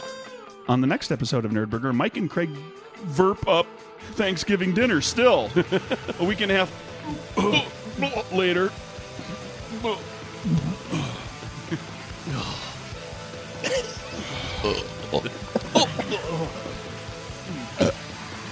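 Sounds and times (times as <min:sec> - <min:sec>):
speech: 0:00.7 - 0:09.3, 0:09.8 - 0:11.1, 0:14.6 - 0:15.4
laughter-like sounds: 0:05.4 - 0:07.9, 0:10.6 - 0:12.0, 0:13.7 - 0:16.8
person burping: 0:07.0 - 0:08.0, 0:09.2 - 0:12.8, 0:13.6 - 0:16.8, 0:17.5 - 0:18.0.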